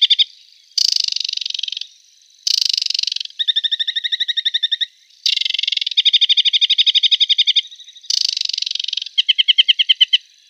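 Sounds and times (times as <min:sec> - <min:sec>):
Aquatic warbler song: 0:00.0 - 0:10.4.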